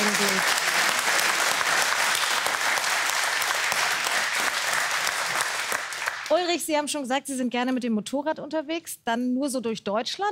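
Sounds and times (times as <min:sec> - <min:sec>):
audience applause: 0:00.0 - 0:06.3
speech: 0:06.3 - 0:10.2.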